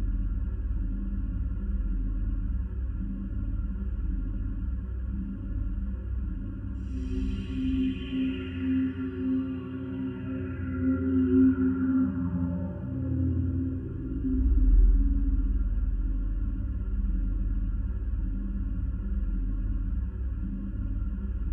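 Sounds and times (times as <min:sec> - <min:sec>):
ambience: 0:00.0 - 0:21.5.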